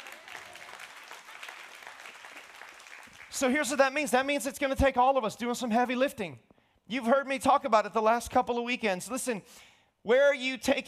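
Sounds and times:
crowd applauding: 0:00.0 - 0:03.6
speech: 0:03.4 - 0:10.8.

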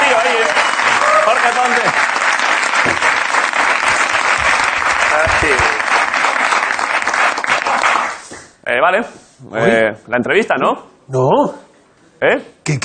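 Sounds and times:
audience applause: 0:00.0 - 0:08.3
speech: 0:01.5 - 0:02.1, 0:08.9 - 0:11.6, 0:12.2 - 0:12.8.

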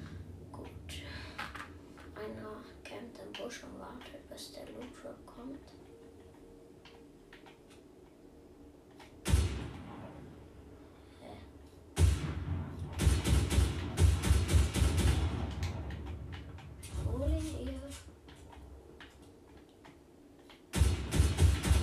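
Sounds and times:
low rumble: 0:00.0 - 0:21.8
speech: 0:03.5 - 0:05.9
gunfire in Fortnite: 0:09.2 - 0:10.3, 0:12.0 - 0:17.0, 0:20.7 - 0:21.8.

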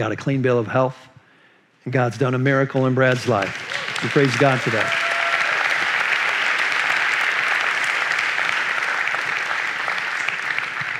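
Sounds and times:
speech: 0:00.0 - 0:01.1, 0:01.8 - 0:05.0
crowd applauding: 0:03.1 - 0:10.9.

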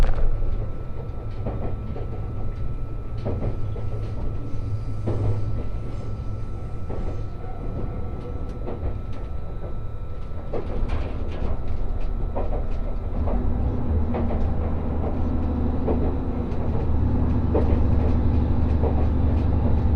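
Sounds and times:
rail clicks and knocks: 0:00.0 - 0:06.0, 0:06.8 - 0:19.9
Resort Shirakami No. 4 train rolling: 0:00.0 - 0:19.9.

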